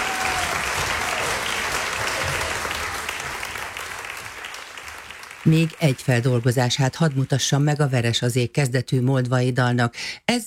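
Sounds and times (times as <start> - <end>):
audience applause: 0.0 - 7.3
speech: 5.5 - 10.4.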